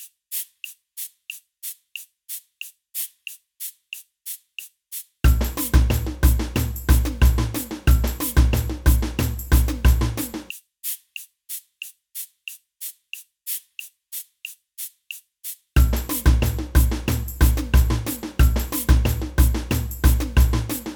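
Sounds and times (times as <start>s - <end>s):
ganza shaker: 0.0s - 20.9s
samba band playing samba: 5.3s - 10.5s, 15.8s - 20.9s.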